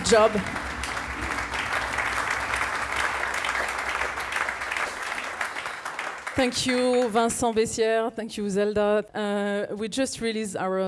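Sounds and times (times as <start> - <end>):
audience applause: 0.0 - 7.6
speech: 0.1 - 0.6, 6.4 - 10.8.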